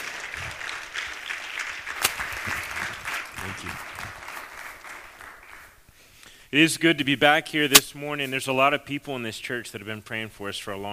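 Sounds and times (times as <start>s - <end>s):
sharp clap: 0.0s - 5.8s
church congregation applause welcoming a speaker at a morning service: 0.0s - 5.9s
speech: 3.4s - 3.9s, 6.5s - 10.9s.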